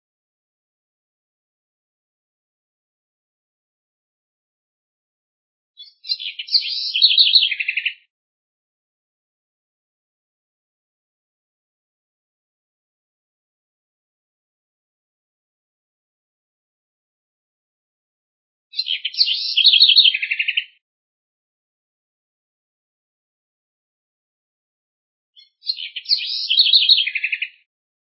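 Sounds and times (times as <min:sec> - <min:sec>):
house wren singing: 0:05.8 - 0:08.1, 0:18.7 - 0:20.8, 0:25.4 - 0:27.7.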